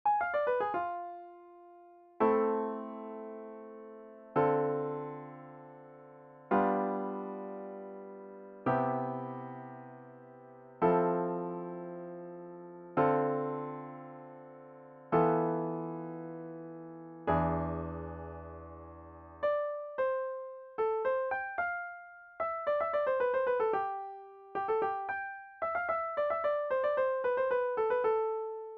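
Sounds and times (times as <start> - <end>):
piano: 0.0 - 28.7.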